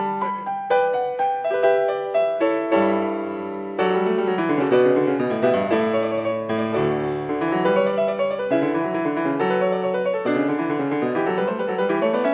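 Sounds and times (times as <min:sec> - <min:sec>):
keyboard fugue in D major: 0:00.0 - 0:12.3.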